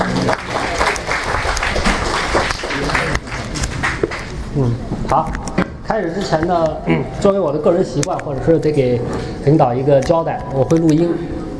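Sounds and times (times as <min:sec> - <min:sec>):
audience applause welcoming a director before a university talk: 0:00.0 - 0:04.4
speech: 0:04.6 - 0:11.3.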